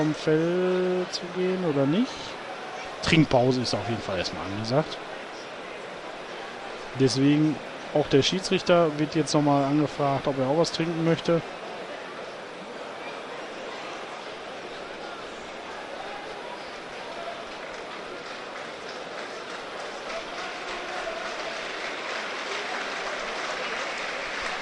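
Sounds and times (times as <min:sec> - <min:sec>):
speech: 0:00.0 - 0:02.4, 0:03.0 - 0:05.1, 0:07.0 - 0:11.6
stadium crowd applause: 0:00.0 - 0:24.5.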